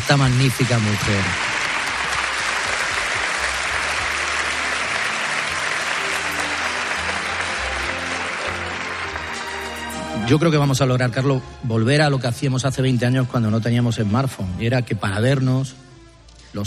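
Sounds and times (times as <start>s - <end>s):
sustained audience applause: 0.0s - 10.2s
speech: 0.1s - 1.5s, 10.3s - 15.8s.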